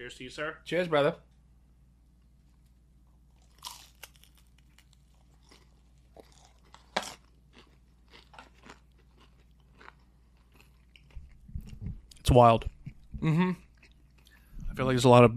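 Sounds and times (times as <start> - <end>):
low steady hum: 0.0 - 15.3
speech: 0.1 - 1.3, 12.3 - 13.6, 14.8 - 15.3
person biting and chewing Peeps pizza: 3.3 - 11.9.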